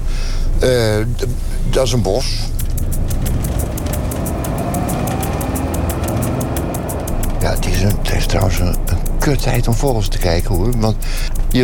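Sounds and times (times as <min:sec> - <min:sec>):
car engine and road noise from inside: 0:00.0 - 0:11.6
rapid regular ticking: 0:00.0 - 0:11.6
speech: 0:00.6 - 0:02.6, 0:07.4 - 0:11.6.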